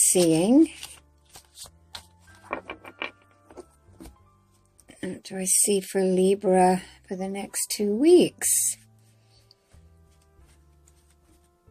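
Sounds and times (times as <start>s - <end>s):
cards shuffled by hand before a horoscope reading: 0.0s - 4.7s, 10.0s - 11.7s
speech: 0.1s - 0.8s, 5.1s - 8.8s.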